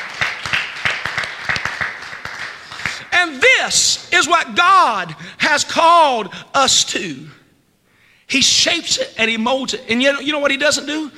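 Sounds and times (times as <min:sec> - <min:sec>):
audience clapping: 0:00.0 - 0:03.1
speech: 0:03.2 - 0:07.4, 0:08.3 - 0:11.1.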